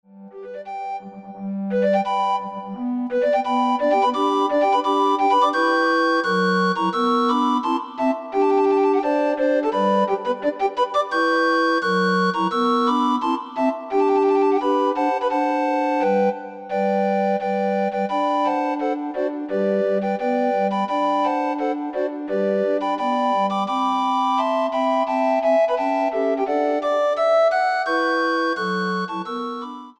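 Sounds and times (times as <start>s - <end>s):
recorder ensemble: 0.4s - 29.9s.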